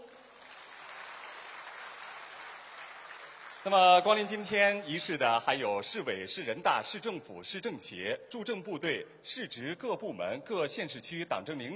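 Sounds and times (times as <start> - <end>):
applause: 0.0 - 4.8
speech: 3.6 - 11.7.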